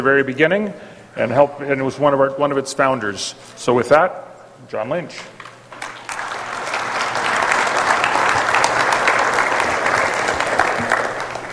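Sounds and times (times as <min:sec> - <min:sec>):
speech: 0:00.0 - 0:05.4
audience applause: 0:05.7 - 0:11.5.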